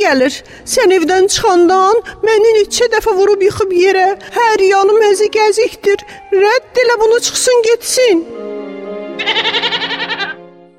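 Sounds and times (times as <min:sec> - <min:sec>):
speech: 0:00.1 - 0:08.5
spotted goat bleating: 0:09.2 - 0:10.4.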